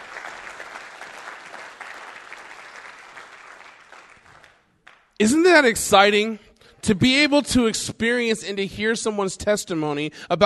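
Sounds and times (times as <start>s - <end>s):
round of applause: 0.0s - 5.1s
speech: 5.2s - 10.4s.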